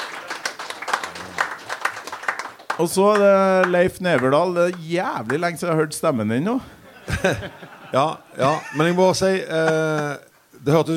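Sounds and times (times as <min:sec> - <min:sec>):
applause: 0:00.0 - 0:05.4, 0:09.6 - 0:10.1
speech: 0:02.8 - 0:10.9
laughter: 0:06.6 - 0:09.8.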